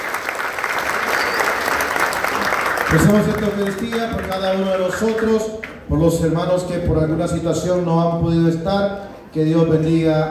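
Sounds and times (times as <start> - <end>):
applause from a church congregation gathered for Mass: 0.0 - 5.8
speech: 2.9 - 10.3.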